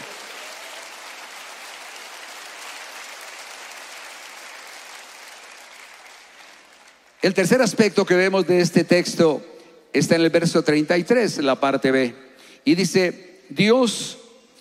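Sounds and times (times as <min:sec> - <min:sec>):
audience applause: 0:00.0 - 0:07.2
speech: 0:07.2 - 0:14.2.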